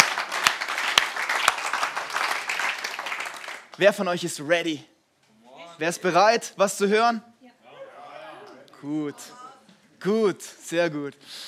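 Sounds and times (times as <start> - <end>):
crowd applause: 0.0 - 3.8
speech: 3.8 - 4.9, 5.8 - 7.3, 8.8 - 9.4, 10.0 - 11.4.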